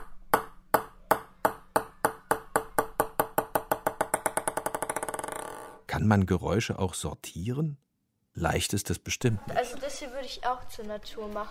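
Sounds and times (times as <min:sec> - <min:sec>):
table tennis ball dropped and bouncing: 0:00.0 - 0:05.8
speech: 0:06.0 - 0:07.8, 0:08.4 - 0:11.4.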